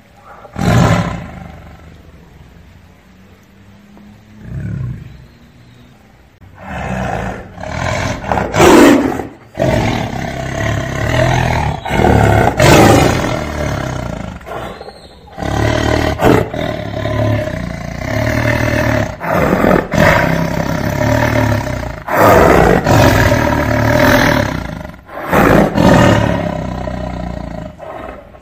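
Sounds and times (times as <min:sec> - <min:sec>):
tiger roaring: 0:00.2 - 0:02.0, 0:06.5 - 0:28.4.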